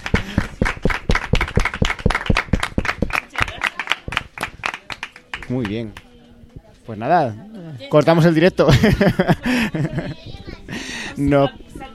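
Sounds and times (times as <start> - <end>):
small audience clapping at a family radio workshop during a festival: 0.0 - 6.1
speech: 5.5 - 6.0, 6.9 - 11.6
laughter: 8.6 - 10.9.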